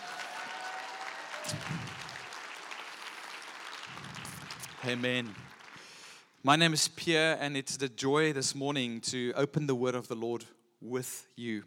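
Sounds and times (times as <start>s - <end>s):
audience cheering and clapping: 0.0s - 6.2s
speech: 1.5s - 2.0s, 4.8s - 5.4s, 6.4s - 11.6s.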